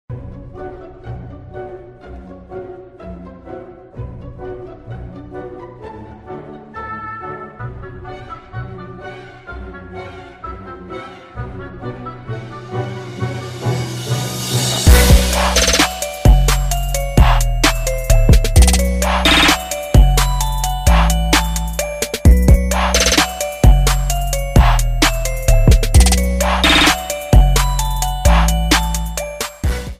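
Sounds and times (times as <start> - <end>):
trap remix: 13.0 - 29.9.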